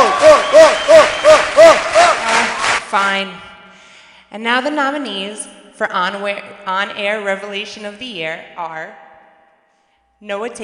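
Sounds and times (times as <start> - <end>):
audience applauding: 0.0 - 2.9
speech: 3.2 - 3.5, 4.3 - 9.0, 10.2 - 10.6.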